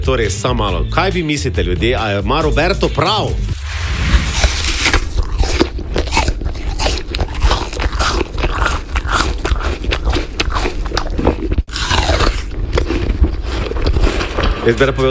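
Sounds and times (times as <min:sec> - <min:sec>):
speech: 0:00.0 - 0:04.1, 0:14.6 - 0:15.0
person biting and chewing an apple: 0:03.6 - 0:15.0.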